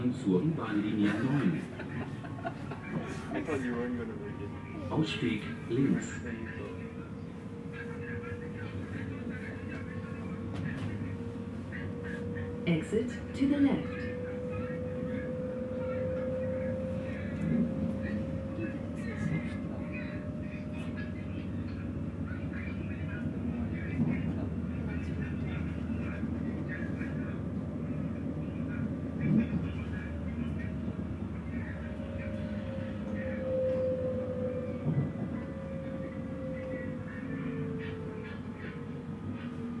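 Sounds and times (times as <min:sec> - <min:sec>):
S-Bahn train rumbling: 0:00.0 - 0:39.7
murmured speech: 0:00.0 - 0:39.7
laughter: 0:01.0 - 0:04.1.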